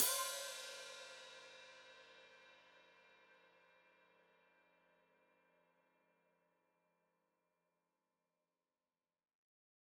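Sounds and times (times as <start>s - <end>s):
open hi-hat played with foot: 0.0s - 2.1s.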